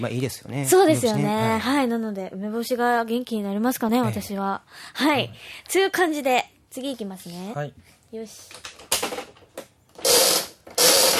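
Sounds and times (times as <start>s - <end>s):
speech: 0.0s - 9.3s
gachapon capsule toy machine crank ratcheting clicks at home: 10.0s - 11.1s.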